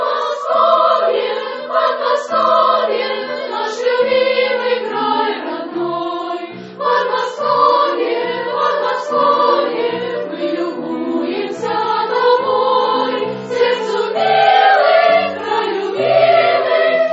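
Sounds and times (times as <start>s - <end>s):
senior school choir singing: 0.0s - 17.1s.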